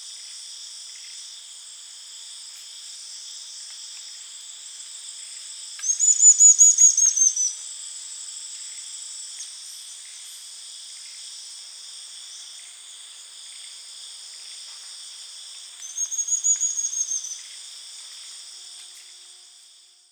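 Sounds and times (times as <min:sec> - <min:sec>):
constant droning insects: 0:00.0 - 0:20.0
Rio Madeira stipplethroat singing: 0:05.8 - 0:07.5.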